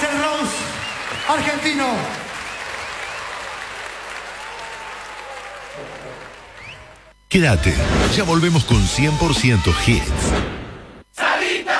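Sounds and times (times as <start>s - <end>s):
audience applause: 0.0s - 7.1s
speech: 1.3s - 2.2s, 7.3s - 10.6s.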